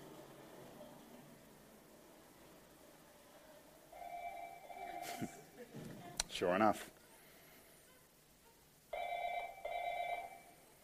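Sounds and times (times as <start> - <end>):
telephone ringing: 3.9 - 5.4, 8.9 - 10.6
speech: 5.2 - 5.4, 6.4 - 7.0.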